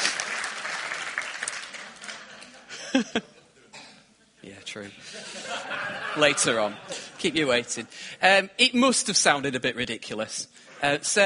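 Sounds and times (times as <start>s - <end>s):
audience clapping: 0.0s - 2.8s
laughter: 2.0s - 3.7s, 5.0s - 7.3s
speech: 2.9s - 3.3s, 4.4s - 11.2s.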